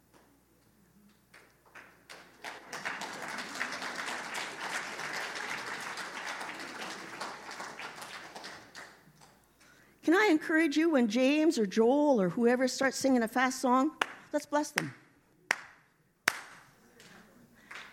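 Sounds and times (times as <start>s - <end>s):
audience clapping hands: 1.3s - 9.4s, 14.8s - 16.7s, 17.6s - 17.9s
speech: 10.1s - 15.0s.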